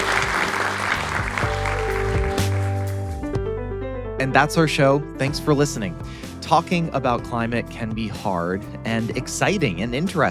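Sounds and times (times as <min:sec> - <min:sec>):
audience applause: 0:00.0 - 0:03.0
speech: 0:04.2 - 0:10.2.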